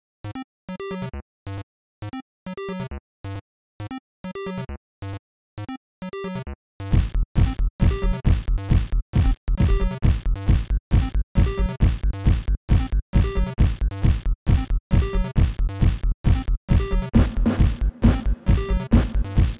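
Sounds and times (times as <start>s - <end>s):
NES acid house music: 6.9s - 19.5s.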